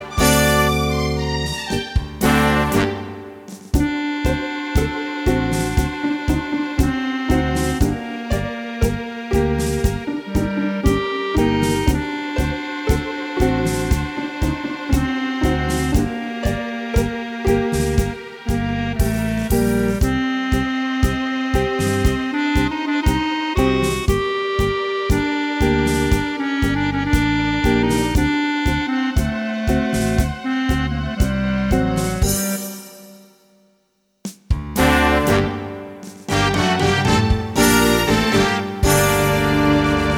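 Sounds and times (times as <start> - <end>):
tango music: 0.0 - 32.8, 34.8 - 40.1.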